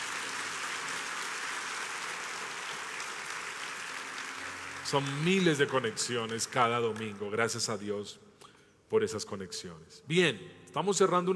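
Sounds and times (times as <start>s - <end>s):
audience applauding: 0.0s - 7.7s
speech: 4.9s - 8.3s, 8.9s - 11.3s.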